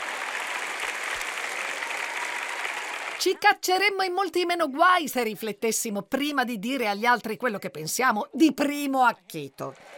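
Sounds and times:
one person applauding at the back: 0:00.0 - 0:03.3
speech: 0:03.2 - 0:09.9.

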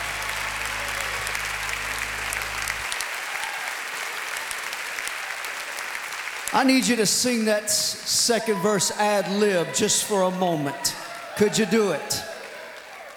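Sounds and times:
audience hand clapping: 0:00.0 - 0:07.6, 0:08.6 - 0:13.1
speech: 0:06.5 - 0:12.3.

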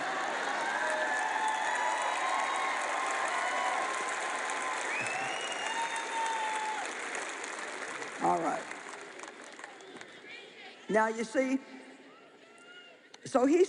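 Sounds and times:
audience clapping: 0:00.0 - 0:10.4
speech: 0:10.9 - 0:11.8, 0:13.3 - 0:13.6.

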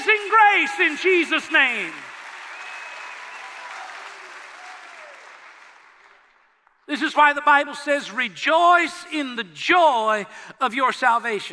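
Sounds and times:
people clapping hands in praise: 0:00.0 - 0:06.9
speech: 0:00.7 - 0:02.1, 0:06.9 - 0:11.5.

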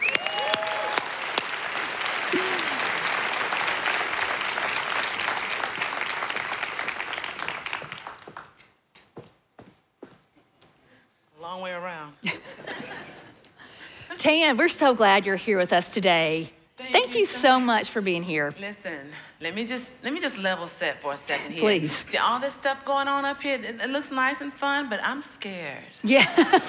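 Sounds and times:
church audience clapping for a worship leader: 0:00.0 - 0:09.0
laughter: 0:02.3 - 0:03.1, 0:12.2 - 0:14.1, 0:26.0 - 0:26.6
speech: 0:14.2 - 0:16.6, 0:17.2 - 0:26.6.

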